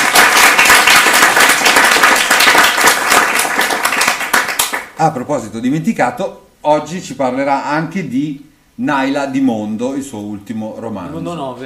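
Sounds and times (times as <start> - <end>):
audience applause: 0.0 - 4.9
speech: 5.0 - 11.6.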